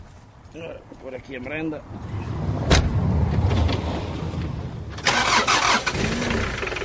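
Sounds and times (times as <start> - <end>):
speech: 1.0 - 3.1
van engine starting: 2.5 - 6.8.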